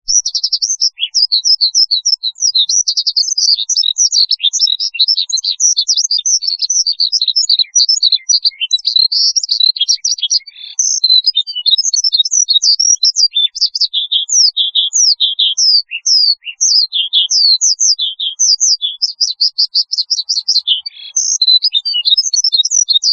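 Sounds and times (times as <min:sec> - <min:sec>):
Horsfield's bush lark singing: 0:00.1 - 0:23.1.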